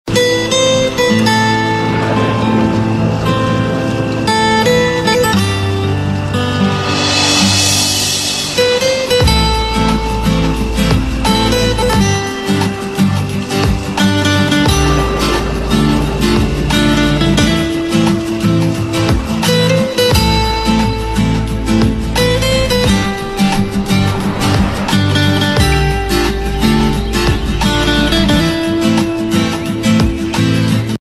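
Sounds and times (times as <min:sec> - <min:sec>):
guitar instrumental: 0:00.1 - 0:30.9.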